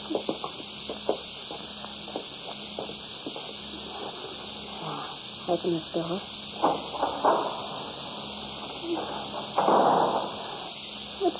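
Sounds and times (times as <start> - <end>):
footsteps descending cellar steps: 0.0 - 4.2
faint low hum: 0.0 - 11.3
steady hiss: 0.0 - 11.3
speech: 5.5 - 6.4.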